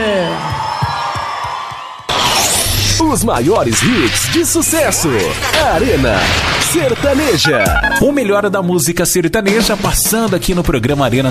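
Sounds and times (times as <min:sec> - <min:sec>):
sertanejo show crowd cheering and whooping: 0:00.0 - 0:02.1
speech: 0:03.1 - 0:11.2.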